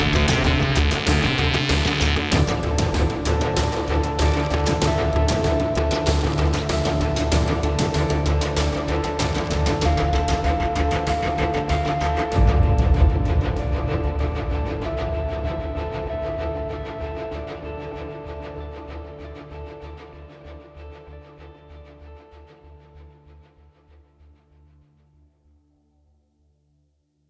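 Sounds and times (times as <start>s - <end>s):
hybrid trailer music: 0.0s - 21.4s.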